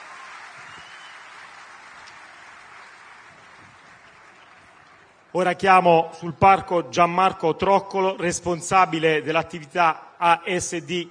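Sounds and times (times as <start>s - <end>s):
audience applause: 0.0s - 5.3s
speech: 5.3s - 11.0s.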